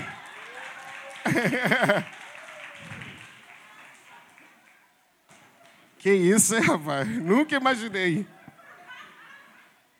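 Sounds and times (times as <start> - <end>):
laughter: 0.0 - 2.3, 5.7 - 9.9
round of applause: 0.0 - 4.9
speech: 1.2 - 2.2, 6.0 - 8.4.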